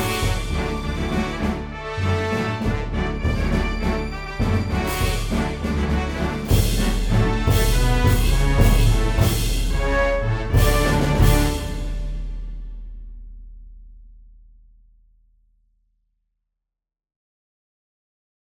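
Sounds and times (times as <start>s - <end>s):
western music: 0.0s - 12.9s.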